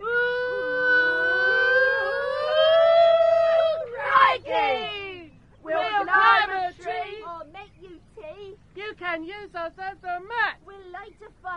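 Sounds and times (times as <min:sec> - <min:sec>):
troop of children howling: 0:00.0 - 0:07.2
speech: 0:09.2 - 0:11.5.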